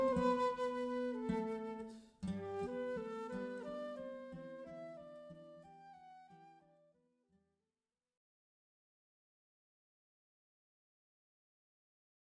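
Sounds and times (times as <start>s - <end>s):
flute: 0.0s - 7.0s
wedding classical guitar: 0.0s - 7.0s.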